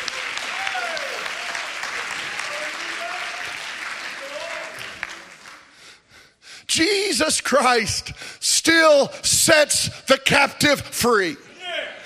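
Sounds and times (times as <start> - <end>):
audience clapping hands: 0.0 - 6.0
speech: 6.8 - 11.5.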